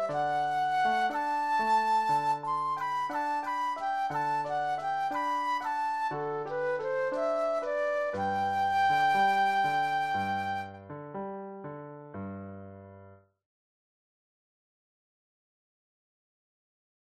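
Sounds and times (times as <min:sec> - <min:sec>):
flute solo: 0:00.0 - 0:10.8.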